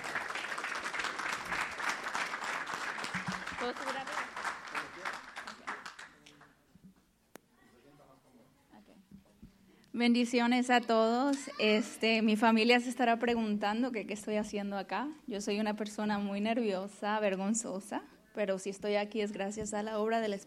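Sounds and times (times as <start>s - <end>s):
audience applause: 0.0s - 6.2s
speech: 3.6s - 4.3s, 10.0s - 20.4s.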